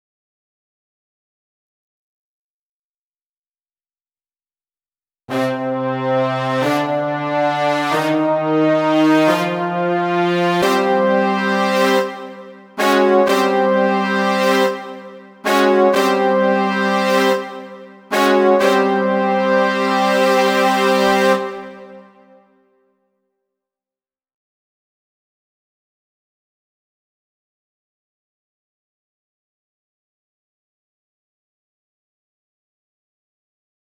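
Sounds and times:
brass instruments: 0:05.3 - 0:22.7.

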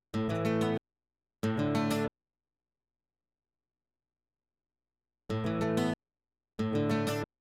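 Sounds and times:
guitar: 0:00.2 - 0:00.8, 0:01.4 - 0:02.1, 0:05.3 - 0:06.0, 0:06.6 - 0:07.3.

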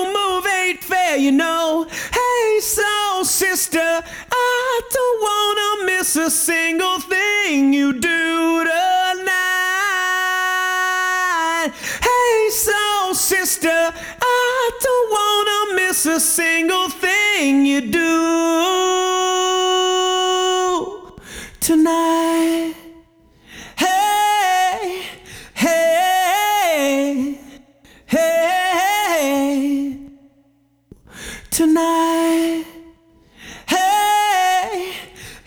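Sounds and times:
a cappella singing: 0:00.0 - 0:35.4.

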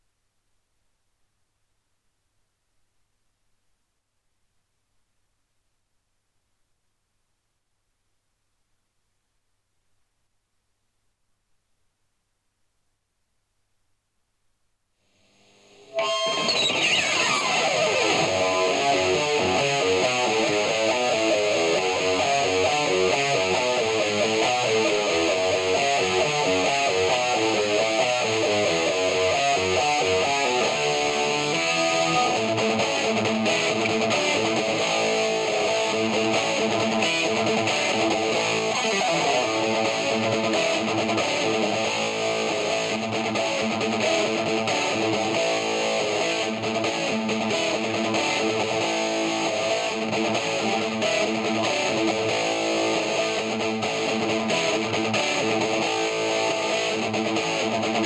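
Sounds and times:
guitar: 0:15.4 - 0:58.0.

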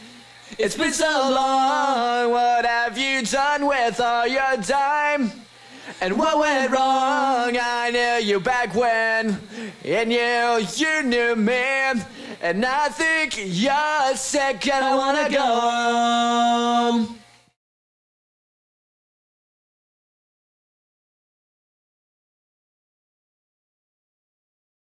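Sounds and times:
person singing: 0:00.5 - 0:17.3.

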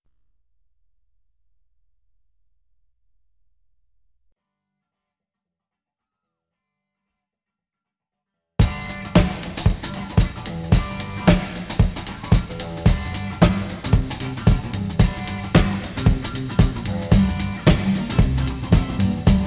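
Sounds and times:
drums: 0:08.6 - 0:19.4.

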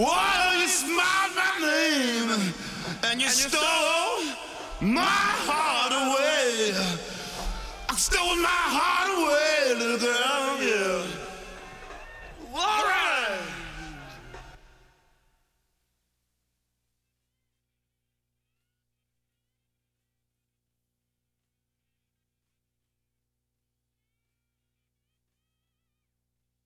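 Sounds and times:
person singing: 0:00.0 - 0:14.4.

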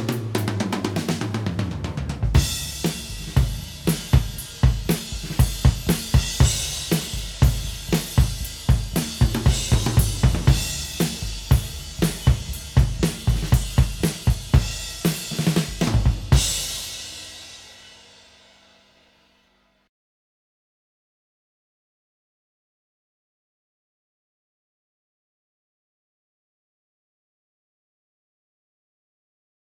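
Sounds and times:
drums: 0:00.0 - 0:19.5.

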